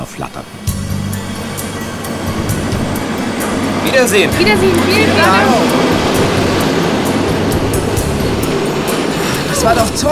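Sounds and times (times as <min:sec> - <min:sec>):
speech: 0:00.0 - 0:00.7, 0:03.8 - 0:06.0, 0:09.6 - 0:10.1
train pulling out of a station: 0:00.0 - 0:10.1.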